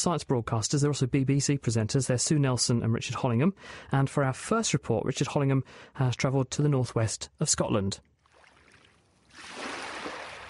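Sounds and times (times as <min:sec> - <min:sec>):
speech: 0:00.0 - 0:08.1
waves lapping a pebble beach in northwest Scotland: 0:08.3 - 0:10.4.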